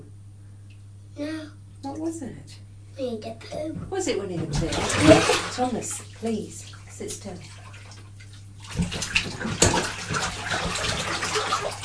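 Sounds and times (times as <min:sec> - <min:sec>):
speech: 0:01.2 - 0:07.6
child splashing in bath water: 0:04.6 - 0:05.6, 0:08.6 - 0:11.8.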